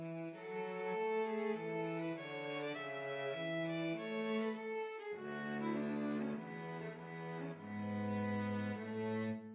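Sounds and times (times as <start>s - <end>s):
slow violin and cello duet: 0.0s - 9.5s.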